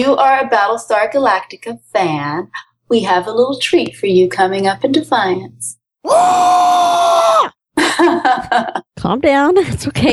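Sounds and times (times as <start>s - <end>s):
speech: 0.0s - 10.1s
wavering vocal cry: 6.0s - 7.5s
loud human scream: 6.0s - 7.6s
laughter: 7.8s - 8.9s.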